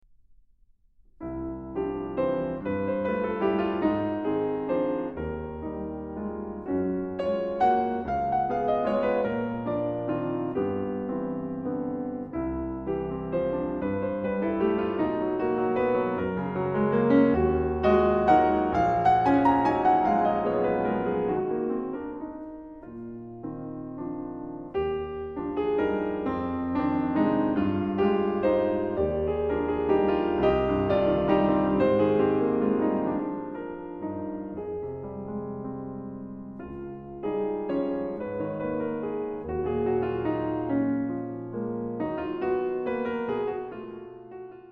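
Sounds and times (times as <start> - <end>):
piano music: 1.2 - 44.7.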